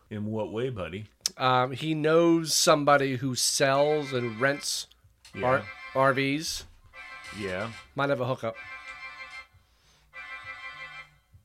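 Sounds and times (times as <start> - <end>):
speech: 0.1 - 6.7, 7.3 - 8.8
low rhythmic pulse: 3.7 - 11.4
phone ringtone for an incoming call: 3.8 - 4.8, 5.4 - 11.4.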